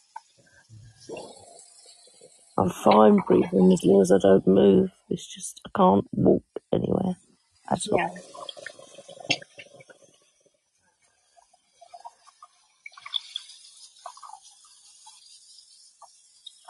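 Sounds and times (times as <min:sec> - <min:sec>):
washing dishes under running tap water: 0:00.0 - 0:04.9, 0:07.7 - 0:10.3, 0:11.7 - 0:16.6
speech: 0:02.6 - 0:08.4.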